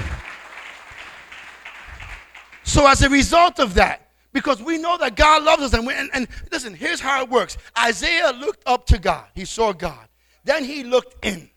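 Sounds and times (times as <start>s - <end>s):
audience clapping: 0.0s - 3.0s
speech: 2.7s - 11.5s.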